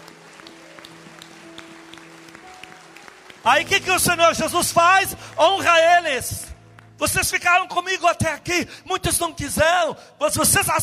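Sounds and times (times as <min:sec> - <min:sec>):
audience applauding: 0:00.0 - 0:07.0
speech: 0:03.4 - 0:10.8.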